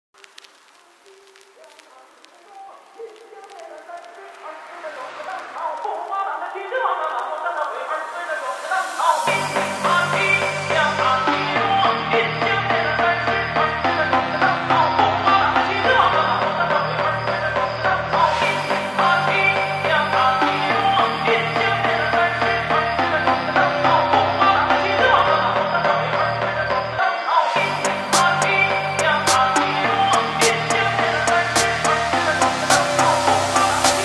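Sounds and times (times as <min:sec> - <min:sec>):
phonk remix: 0:00.2 - 0:34.0.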